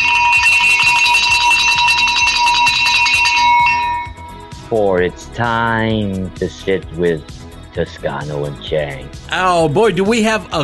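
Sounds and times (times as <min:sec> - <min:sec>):
bell ringing: 0:00.0 - 0:04.7
speech: 0:04.7 - 0:10.6.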